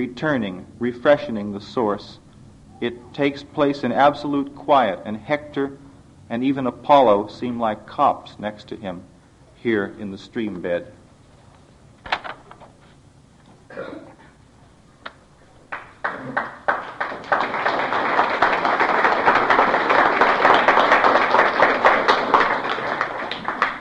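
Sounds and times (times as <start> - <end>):
speech: 0.0 - 2.2, 2.8 - 11.0
audience applause after a poem reading: 15.7 - 23.8.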